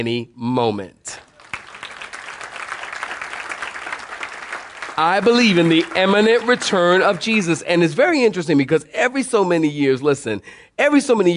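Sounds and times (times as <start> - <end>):
speech: 0.0 - 1.2, 5.0 - 11.3
audience applauding: 1.3 - 7.6.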